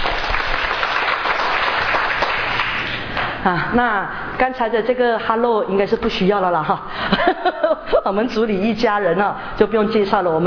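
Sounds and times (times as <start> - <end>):
group clapping: 0.0 - 3.4
speech: 3.4 - 10.4.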